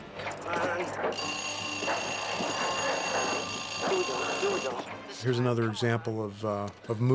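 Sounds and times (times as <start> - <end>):
alarm clock ringing in a film scene: 0.3 - 4.9
speech: 5.5 - 7.1.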